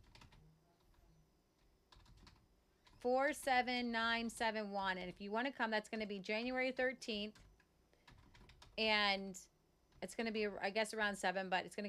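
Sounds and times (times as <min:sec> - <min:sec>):
light typing on a computer keyboard into a chat: 0:00.0 - 0:03.1, 0:07.2 - 0:08.8
speech: 0:03.0 - 0:07.4, 0:08.8 - 0:11.8.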